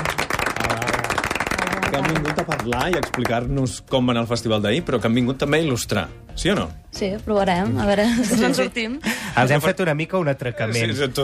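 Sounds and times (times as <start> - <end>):
applause: 0.0 - 3.8
speech: 2.0 - 11.2.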